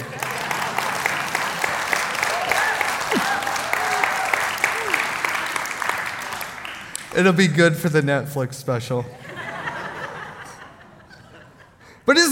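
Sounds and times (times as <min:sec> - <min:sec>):
laughter: 0:00.0 - 0:01.8, 0:03.0 - 0:04.0, 0:09.1 - 0:12.2
crowd clapping: 0:00.0 - 0:07.3
faint whoops: 0:02.2 - 0:05.2
speech: 0:07.2 - 0:09.3, 0:12.0 - 0:12.2.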